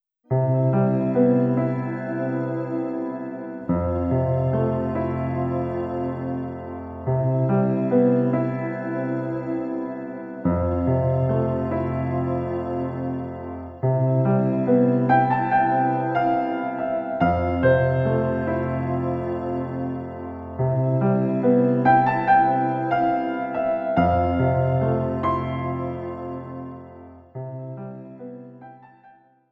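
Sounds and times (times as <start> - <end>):
background music: 0.3 - 28.9.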